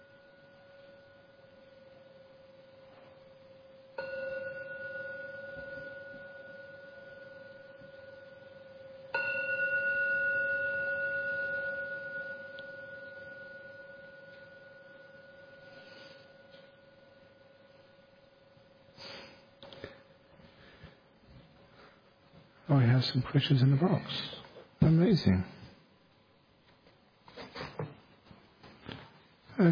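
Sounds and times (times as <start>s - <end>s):
meditation gong ringing: 0.0s - 18.9s
speech: 22.7s - 24.4s, 25.2s - 25.6s.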